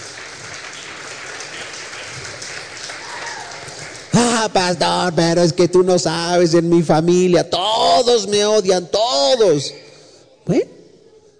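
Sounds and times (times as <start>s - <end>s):
audience applauding: 0.0s - 5.1s
speech: 4.2s - 9.8s, 10.5s - 10.8s.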